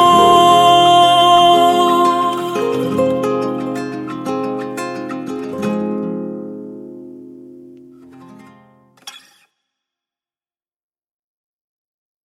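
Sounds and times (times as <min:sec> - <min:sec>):
guitar: 0:00.0 - 0:09.5.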